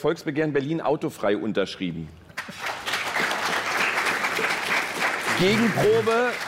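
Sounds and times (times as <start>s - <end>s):
speech: 0.0s - 2.7s, 5.4s - 6.4s
audience applause: 2.4s - 6.4s.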